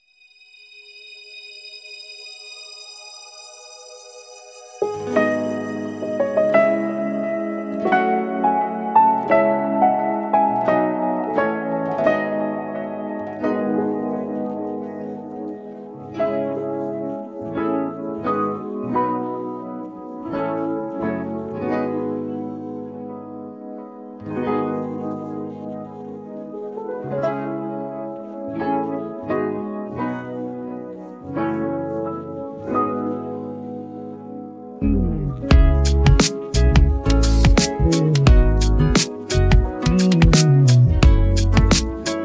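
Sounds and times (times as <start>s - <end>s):
instrumental music: 0.8s - 42.2s.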